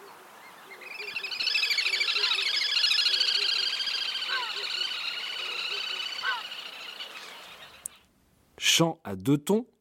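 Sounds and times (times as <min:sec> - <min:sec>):
little grebe song: 0:00.7 - 0:08.0
speech: 0:08.6 - 0:09.7.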